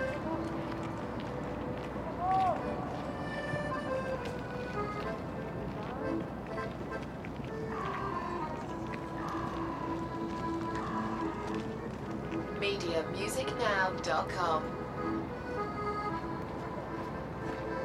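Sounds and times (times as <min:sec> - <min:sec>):
accordion in a city square: 0:00.0 - 0:17.8.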